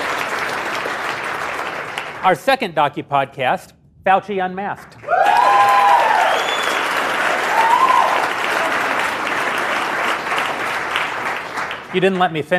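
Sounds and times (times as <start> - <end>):
crowd clapping: 0.0 - 2.4, 4.8 - 12.5
speech: 2.2 - 5.1, 11.9 - 12.5
sharp whistles: 6.2 - 6.9.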